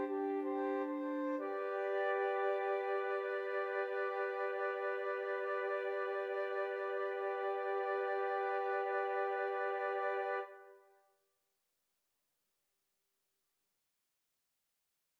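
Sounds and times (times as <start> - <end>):
flute quartet playing: 0.0 - 10.7.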